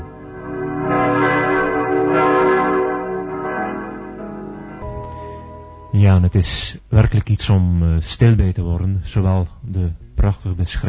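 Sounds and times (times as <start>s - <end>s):
heavy church bells tolling: 0.0s - 6.4s
speech: 6.1s - 10.8s.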